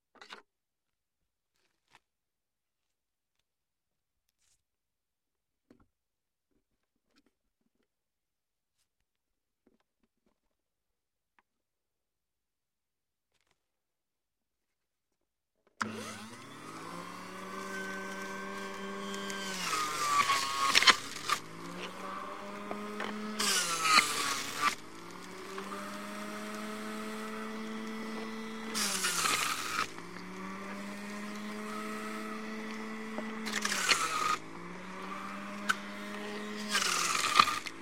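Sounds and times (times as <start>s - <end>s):
blender running: 15.8s - 37.8s.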